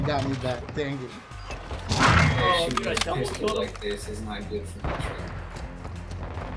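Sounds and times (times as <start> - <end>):
speech: 0.1 - 5.3
multiplayer shooter video game noise: 1.0 - 4.2.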